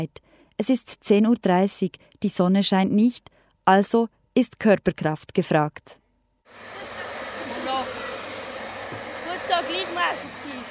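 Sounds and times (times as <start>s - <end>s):
speech: 0.0s - 6.8s, 9.4s - 10.6s
hair dryer blowing a ball on a table-football table at a school energy event: 6.5s - 10.6s.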